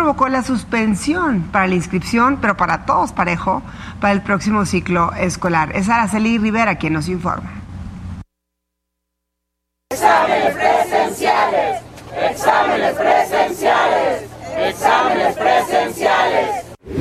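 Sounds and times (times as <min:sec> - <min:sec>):
speech: 0:00.1 - 0:07.6
protest march crowd chanting: 0:09.9 - 0:16.8.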